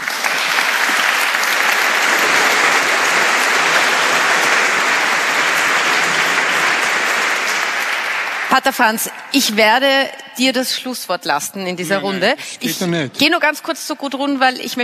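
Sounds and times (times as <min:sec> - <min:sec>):
audience applause: 0:00.0 - 0:10.0
speech: 0:08.6 - 0:14.8.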